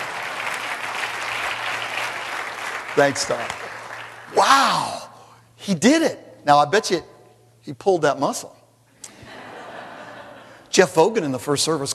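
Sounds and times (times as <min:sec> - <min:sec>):
audience applause: 0:00.0 - 0:04.8
speech: 0:03.0 - 0:03.6, 0:04.3 - 0:05.0, 0:05.6 - 0:08.6, 0:10.8 - 0:11.9
laughter: 0:09.0 - 0:10.7.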